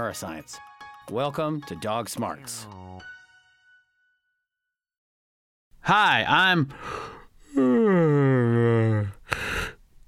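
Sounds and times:
speech: 0:00.0 - 0:03.2, 0:05.8 - 0:07.2
human yawn: 0:07.4 - 0:09.5.

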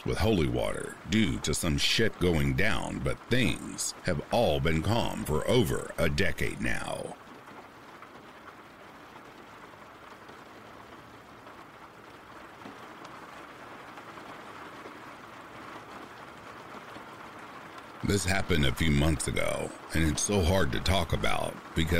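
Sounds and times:
speech: 0:00.0 - 0:07.2, 0:18.1 - 0:21.9
steady rain: 0:00.0 - 0:21.9.

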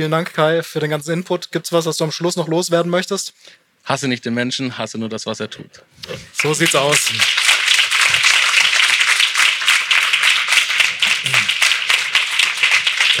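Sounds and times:
speech: 0:00.0 - 0:07.5
audience applause: 0:06.3 - 0:13.1.

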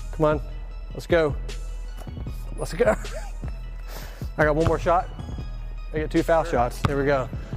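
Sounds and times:
speech: 0:00.2 - 0:01.6, 0:02.6 - 0:03.2, 0:04.4 - 0:05.2, 0:05.9 - 0:07.4
basketball bouncing before free throws: 0:06.8 - 0:07.1.

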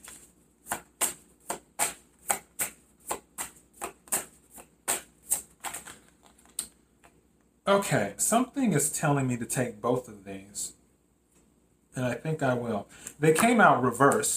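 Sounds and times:
tarot cards shuffled and drawn: 0:00.0 - 0:07.2
speech: 0:07.7 - 0:10.8, 0:12.0 - 0:14.3.

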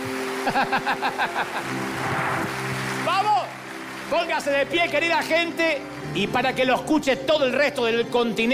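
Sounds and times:
audience applause: 0:00.0 - 0:06.8
laughter: 0:00.4 - 0:02.0
speech: 0:00.4 - 0:03.5, 0:04.1 - 0:08.5.

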